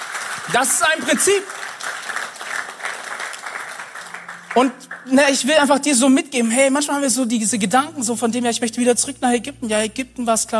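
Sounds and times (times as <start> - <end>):
audience applause: 0.0 - 5.7
speech: 0.5 - 1.6, 4.6 - 10.5.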